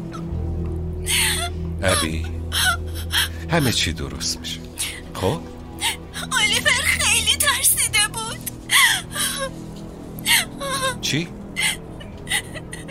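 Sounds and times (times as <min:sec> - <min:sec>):
child crying: 0:01.1 - 0:03.8, 0:05.8 - 0:09.5, 0:10.3 - 0:11.0, 0:11.6 - 0:12.8
speech: 0:01.8 - 0:02.8, 0:03.5 - 0:06.7, 0:11.0 - 0:11.4.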